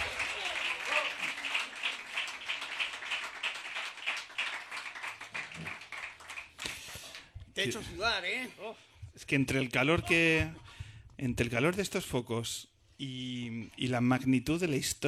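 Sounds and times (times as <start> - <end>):
crowd applauding: 0.0 - 7.3
speech: 7.6 - 10.6, 11.2 - 15.0.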